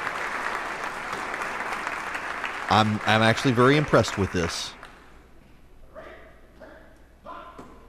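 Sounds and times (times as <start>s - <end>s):
applause: 0.0s - 5.0s
speech: 2.7s - 4.8s.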